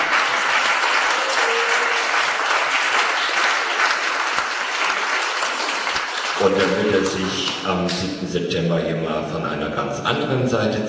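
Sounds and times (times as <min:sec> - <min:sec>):
audience applause: 0:00.0 - 0:08.2
speech: 0:06.4 - 0:10.8.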